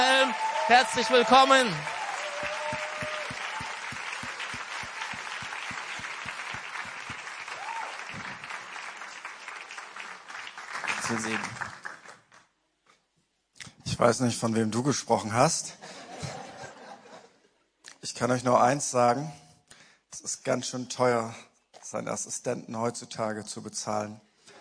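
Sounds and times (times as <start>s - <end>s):
audience applause: 0.0s - 12.4s
speech: 0.3s - 1.9s, 11.1s - 11.6s, 14.0s - 15.8s, 18.2s - 19.4s, 20.4s - 24.3s
laughter: 15.8s - 17.5s.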